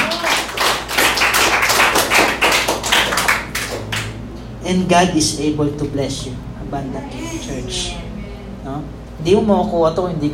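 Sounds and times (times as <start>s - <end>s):
audience applauding: 0.0s - 4.2s
speech: 4.7s - 10.3s.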